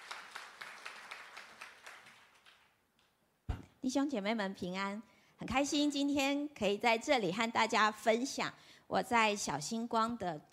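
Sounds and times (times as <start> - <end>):
audience clapping in welcome: 0.0 - 2.8
speech: 3.8 - 10.5.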